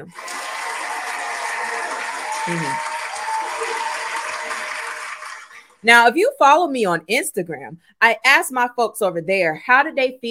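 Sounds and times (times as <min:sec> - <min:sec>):
speech: 0:00.0 - 0:00.4, 0:02.4 - 0:02.9, 0:05.8 - 0:10.2
round of applause: 0:00.0 - 0:05.8.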